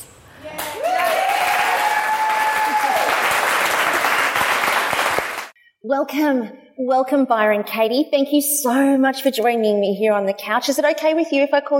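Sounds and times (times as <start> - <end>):
talk show audience applause welcoming a guest: 0.6 - 5.5
speech: 5.9 - 11.7.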